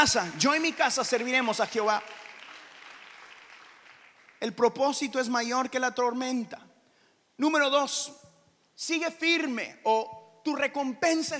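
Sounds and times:
speech: 0.0s - 2.4s, 4.4s - 6.7s, 7.4s - 11.3s
audience applauding: 0.0s - 4.4s.

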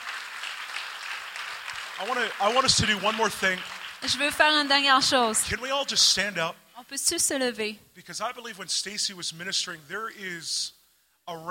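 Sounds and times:
applause: 0.0s - 5.6s
speech: 2.0s - 11.4s.

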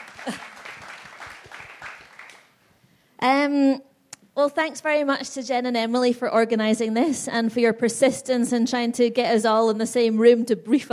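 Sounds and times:
audience clapping: 0.0s - 2.6s
speech: 0.2s - 0.5s, 3.2s - 10.9s.

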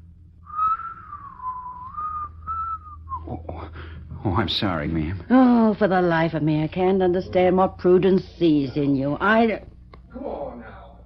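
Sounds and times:
person whistling a tune: 0.5s - 3.4s
speech: 4.2s - 9.7s.

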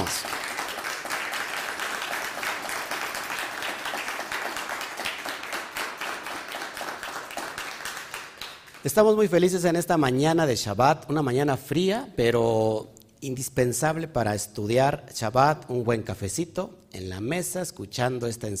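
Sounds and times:
loud audience applause: 0.0s - 8.9s
speech: 8.8s - 18.5s.

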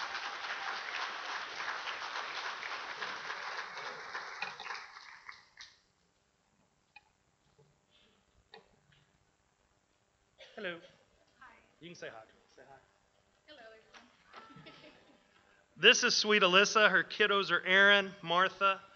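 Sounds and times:
audience clapping and applause: 0.0s - 5.7s
speech: 10.6s - 11.0s, 11.8s - 12.9s, 15.8s - 18.9s.

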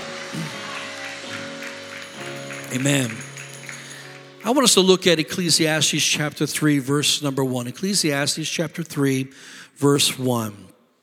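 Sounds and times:
audience clapping hands: 0.0s - 5.8s
speech: 2.7s - 3.3s, 4.4s - 10.8s.

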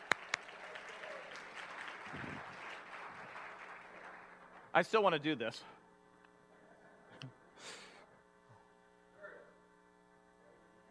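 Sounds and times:
round of applause: 0.0s - 4.8s
speech: 4.8s - 5.8s.

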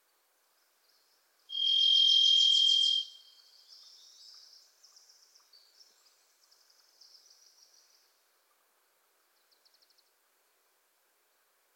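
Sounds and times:
varied thrush whistled buzz: 1.5s - 3.3s.

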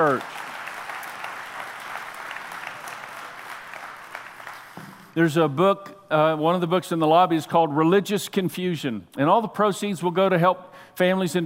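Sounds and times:
speech: 0.0s - 0.4s, 5.2s - 11.4s
audience applause: 0.0s - 5.2s.

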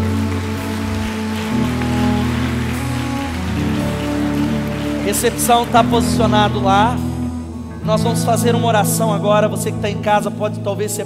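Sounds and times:
audience applauding: 0.0s - 7.3s
speech: 5.1s - 7.1s, 7.8s - 11.0s.

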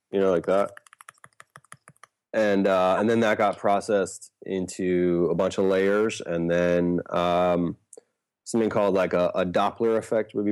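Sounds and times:
speech: 0.1s - 0.8s, 2.3s - 7.8s, 8.5s - 10.4s
fingers tapping on a piece of paper: 0.5s - 2.1s.

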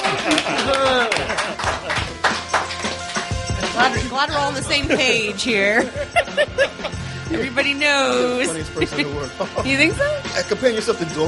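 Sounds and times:
laughter-like vocal sounds: 0.0s - 2.1s, 4.8s - 7.0s, 8.2s - 10.2s
scattered audience clapping: 0.0s - 4.0s
speech: 3.9s - 11.2s.

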